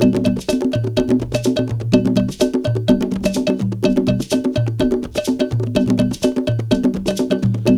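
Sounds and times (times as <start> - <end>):
drum cab bell: 0.0 - 7.7.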